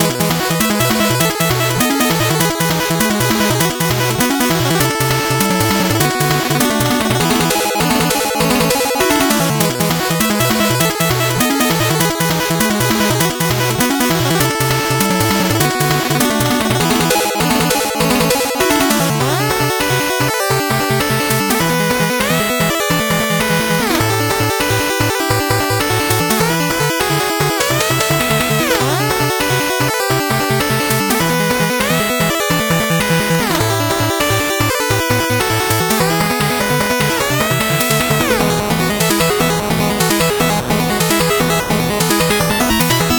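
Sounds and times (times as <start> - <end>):
8-bit background music: 0.0 - 43.1.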